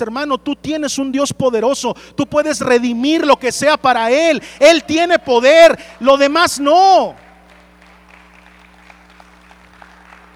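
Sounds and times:
speech: 0.0s - 7.3s
low steady hum: 0.0s - 10.3s
weak half-hearted audience applause: 5.9s - 10.3s.

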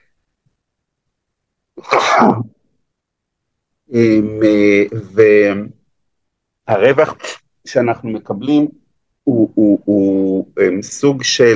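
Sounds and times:
person sneezing: 1.8s - 2.6s
speech: 1.8s - 2.6s, 3.9s - 5.8s, 6.7s - 11.5s.

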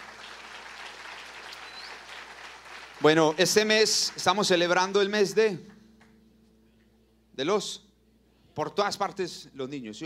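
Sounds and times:
audience applause: 0.0s - 5.4s
speech: 3.0s - 5.7s, 7.4s - 7.8s, 8.6s - 10.0s.

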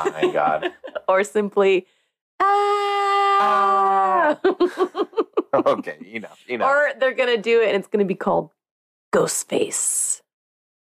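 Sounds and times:
laughter: 0.0s - 1.1s, 3.6s - 6.6s
speech: 0.0s - 2.8s, 3.4s - 10.2s
person screaming: 2.4s - 4.4s
person yelping: 2.4s - 4.4s.

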